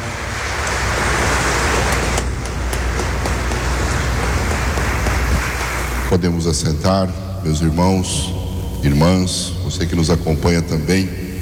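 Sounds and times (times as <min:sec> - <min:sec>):
audience applauding: 0:00.0 - 0:07.0
laughter: 0:00.0 - 0:11.4
speech: 0:06.2 - 0:11.2.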